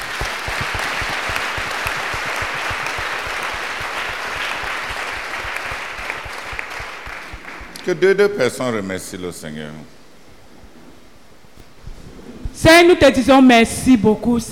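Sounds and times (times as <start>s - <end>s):
applause: 0.0s - 8.0s
speech: 7.9s - 10.0s, 12.7s - 14.5s.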